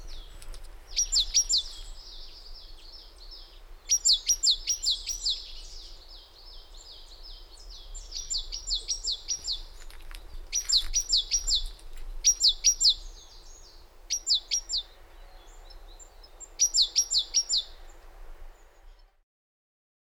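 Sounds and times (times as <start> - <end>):
great tit calling: 0.9 - 6.7, 7.3 - 9.7, 10.5 - 15.0, 15.6 - 17.8.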